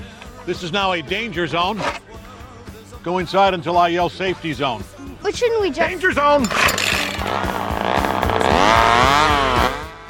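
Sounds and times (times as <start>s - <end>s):
speech: 0.5s - 2.0s, 3.0s - 7.5s
chainsaw cutting a tree trunk: 6.5s - 10.0s.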